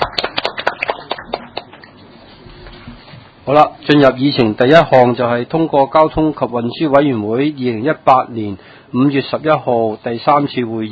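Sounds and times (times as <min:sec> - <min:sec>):
audience applause: 0:00.0 - 0:01.8
speech: 0:03.5 - 0:10.9.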